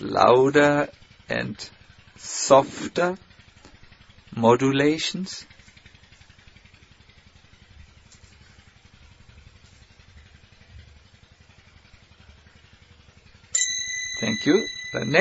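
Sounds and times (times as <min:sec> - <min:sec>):
speech: 0:00.0 - 0:03.3, 0:04.3 - 0:05.5, 0:14.2 - 0:15.1
water pump running: 0:00.0 - 0:04.4, 0:05.4 - 0:15.1.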